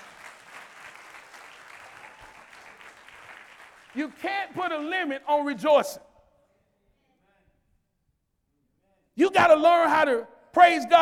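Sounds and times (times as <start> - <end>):
audience hand clapping in praise: 0.0 - 5.6
speech: 3.9 - 6.1, 9.3 - 11.0.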